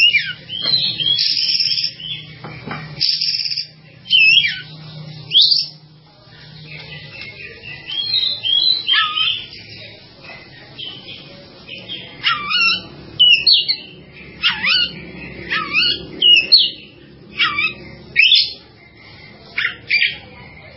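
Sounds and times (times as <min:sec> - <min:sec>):
bird whistled song: 0:00.0 - 0:05.8, 0:06.8 - 0:09.6, 0:11.9 - 0:18.6.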